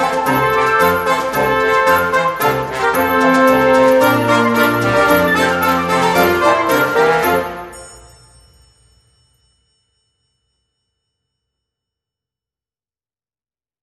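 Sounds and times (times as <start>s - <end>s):
brassy tune: 0.0s - 8.2s.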